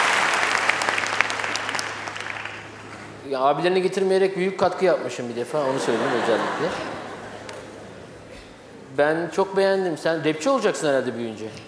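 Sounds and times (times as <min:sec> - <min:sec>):
applause: 0:00.0 - 0:02.9
speech: 0:03.3 - 0:07.0, 0:09.0 - 0:11.6
laughter: 0:05.4 - 0:08.9.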